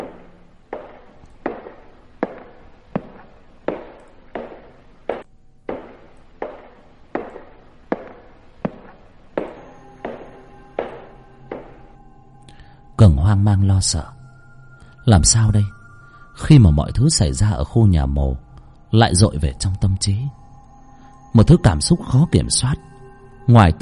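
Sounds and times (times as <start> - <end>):
steady footsteps on a wooden floor: 0.0 - 11.9
speech: 13.0 - 14.2, 15.1 - 15.7, 16.4 - 20.4, 21.3 - 23.8.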